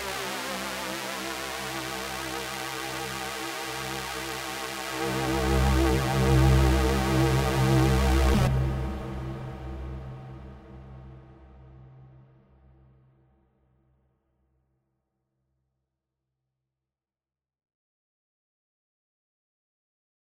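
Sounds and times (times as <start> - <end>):
Roland Fantom Jupiter-8 model synthesizer: 0.0 - 10.2.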